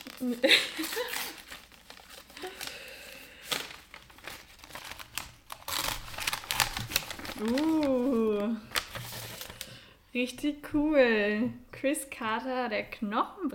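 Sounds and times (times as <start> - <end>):
gift wrapping paper being torn open: 0.0 - 9.7
speech: 0.2 - 1.4, 7.4 - 7.8, 10.2 - 13.5.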